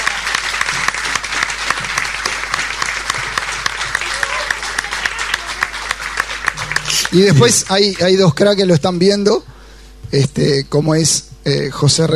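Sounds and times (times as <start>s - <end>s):
audience applause: 0.0s - 8.6s
speech: 7.1s - 9.5s, 10.1s - 12.1s.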